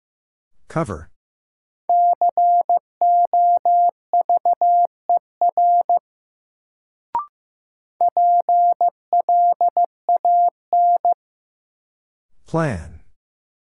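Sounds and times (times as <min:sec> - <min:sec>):
morse code: 0:01.9 - 0:06.0, 0:08.0 - 0:11.2
person speaking a word: 0:12.5 - 0:13.0.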